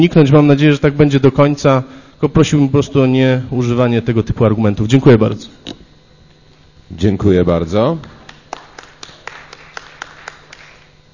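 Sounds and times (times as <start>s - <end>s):
speech: 0.0s - 5.8s, 6.9s - 8.2s
audience applause: 8.3s - 11.0s.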